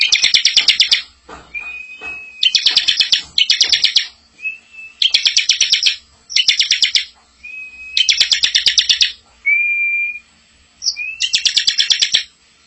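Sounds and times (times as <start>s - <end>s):
bar-winged prinia song with buzzy rattling trills and rising whistles: 0.0s - 12.6s.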